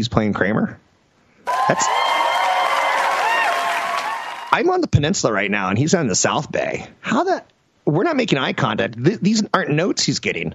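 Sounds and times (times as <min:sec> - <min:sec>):
speech: 0:00.0 - 0:00.8, 0:01.7 - 0:02.0, 0:04.5 - 0:10.5
crowd applause: 0:01.5 - 0:04.6
whistles and cheers: 0:01.5 - 0:04.6.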